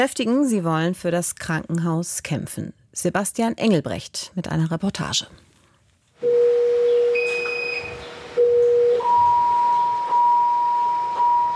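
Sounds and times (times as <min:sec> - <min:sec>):
speech: 0:00.0 - 0:05.4
patient monitor alarm beeping in ward: 0:06.2 - 0:11.5.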